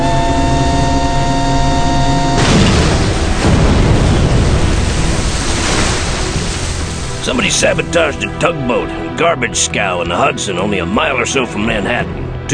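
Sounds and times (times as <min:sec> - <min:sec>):
steady humming drone: 0:00.0 - 0:12.5
bomb explosion: 0:02.2 - 0:08.5
speech: 0:07.3 - 0:12.5.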